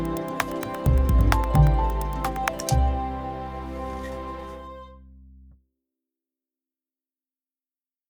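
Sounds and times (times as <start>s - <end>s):
harp music: 0.0s - 5.4s.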